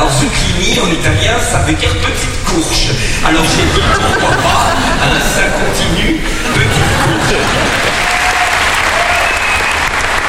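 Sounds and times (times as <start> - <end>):
speech: 0.8 - 6.1
laughter: 3.0 - 8.5
audience standing ovation before an opening film screening: 6.5 - 10.2.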